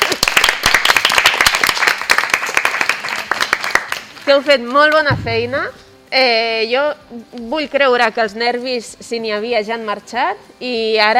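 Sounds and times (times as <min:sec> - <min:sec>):
classroom of children applauding: 0:00.0 - 0:04.1
speech: 0:04.3 - 0:11.1.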